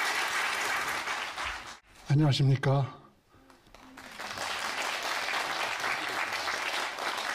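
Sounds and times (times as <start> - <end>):
audience applause: 0.0 - 1.8, 3.5 - 7.3
speech: 2.1 - 3.0.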